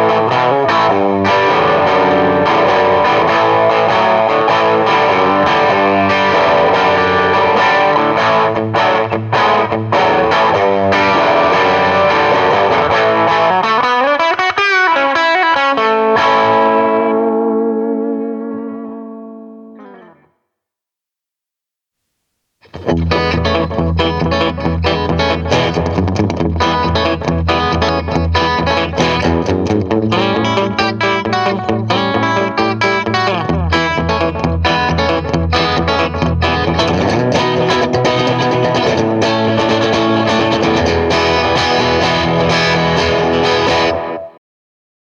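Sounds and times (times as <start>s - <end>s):
Strat Les Paul Gretsch electric guitar: 0.0s - 20.4s, 22.6s - 44.4s.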